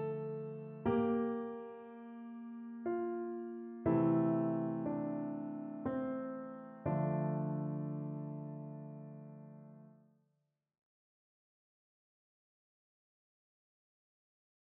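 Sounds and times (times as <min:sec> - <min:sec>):
piano playing a folk tune: 0:00.0 - 0:10.0.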